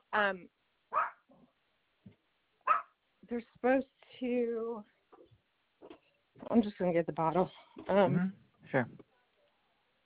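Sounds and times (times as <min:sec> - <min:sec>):
speech: 0:00.2 - 0:00.6, 0:03.3 - 0:05.0, 0:06.4 - 0:09.0
dog barking: 0:00.9 - 0:01.3, 0:02.6 - 0:03.0.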